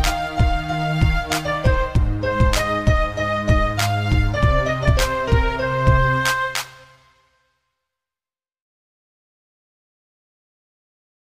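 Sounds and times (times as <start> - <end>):
background music: 0.0 - 7.6.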